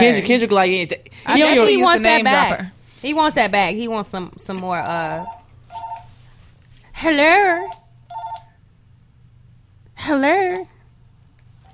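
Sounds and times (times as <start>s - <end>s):
speech: 0.0s - 5.4s, 7.0s - 7.8s, 10.0s - 10.7s
house phone dialing tones: 5.2s - 6.1s.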